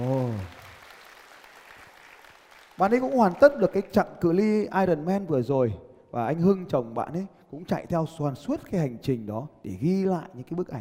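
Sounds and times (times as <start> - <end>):
applause: 0.0 - 4.0
speech: 2.8 - 10.7.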